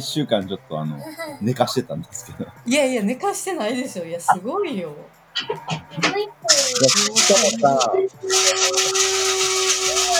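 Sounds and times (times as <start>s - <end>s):
speech: 0.0s - 9.2s
laughter: 0.3s - 2.6s, 5.4s - 10.1s
grinding coffee beans: 8.3s - 10.1s.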